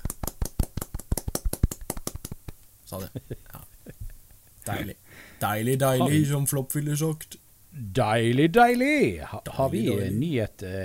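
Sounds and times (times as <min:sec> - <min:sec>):
small golf clap: 0:00.0 - 0:02.4
speech: 0:02.9 - 0:03.7, 0:04.7 - 0:10.8.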